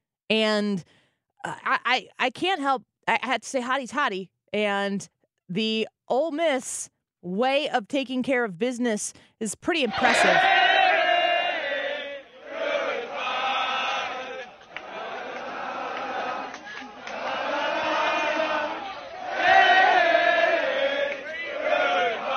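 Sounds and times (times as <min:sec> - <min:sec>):
speech: 0:00.3 - 0:10.6
crowd of college students singing: 0:09.9 - 0:22.3.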